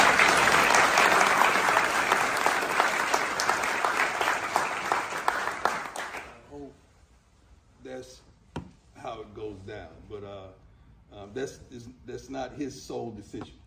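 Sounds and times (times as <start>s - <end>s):
audience applause: 0.0s - 6.4s
speech: 11.4s - 13.6s.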